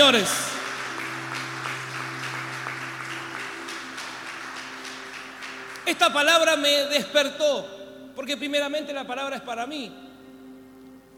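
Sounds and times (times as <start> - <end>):
audience applause: 0.0 - 6.5
low sustained organ or keyboard tones: 0.0 - 11.1
speech: 0.1 - 0.5, 5.9 - 10.1.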